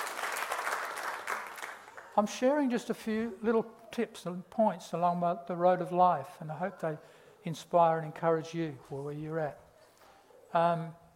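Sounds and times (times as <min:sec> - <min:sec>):
audience clapping: 0:00.0 - 0:02.2
speech: 0:02.2 - 0:09.6, 0:10.5 - 0:11.0.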